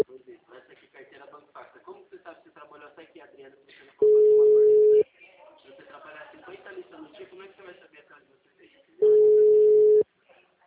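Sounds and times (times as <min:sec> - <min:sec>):
telephone busy signal after dialling a number: 0:04.0 - 0:05.0, 0:09.0 - 0:10.0.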